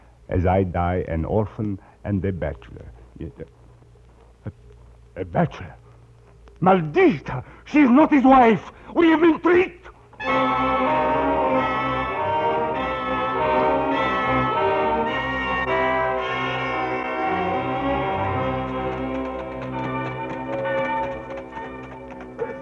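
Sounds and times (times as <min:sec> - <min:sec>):
speech: 0:00.3 - 0:03.6, 0:05.2 - 0:05.8, 0:06.6 - 0:11.2
prison alarm bell ringing: 0:10.2 - 0:22.6.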